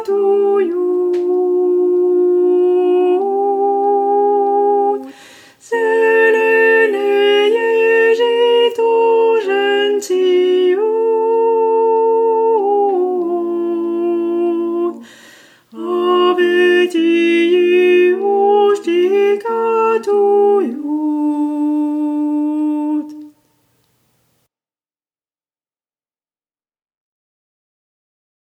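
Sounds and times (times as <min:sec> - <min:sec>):
soprano voices singing a folk song: 0:00.0 - 0:23.4.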